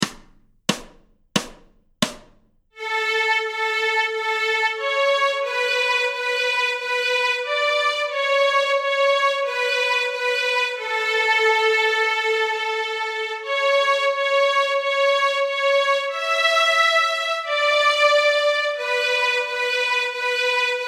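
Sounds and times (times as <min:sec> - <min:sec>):
fiddle tune: 0:02.8 - 0:20.8.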